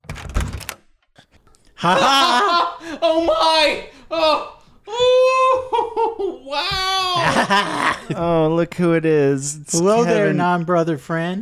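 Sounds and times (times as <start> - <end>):
door opening: 0.0 - 1.2
laughter: 1.8 - 4.4, 5.2 - 8.4
speech: 1.8 - 11.3.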